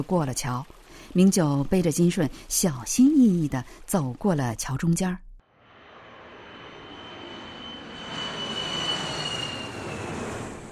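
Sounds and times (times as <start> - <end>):
speech: 0.0 - 5.2
airplane flying overhead: 5.5 - 10.7.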